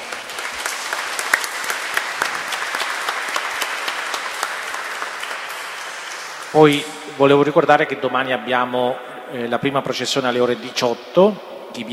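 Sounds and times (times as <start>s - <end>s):
audience applause: 0.0s - 6.7s
speech: 6.5s - 11.9s.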